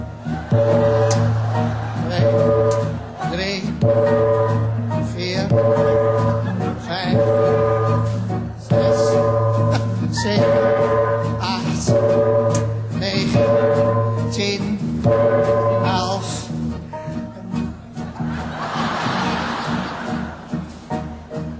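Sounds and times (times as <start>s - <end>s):
laughter: 0.2s - 8.2s, 9.0s - 10.4s, 17.7s - 21.5s
church bell striking midnight: 3.8s - 4.8s, 5.4s - 8.1s, 8.7s - 16.5s.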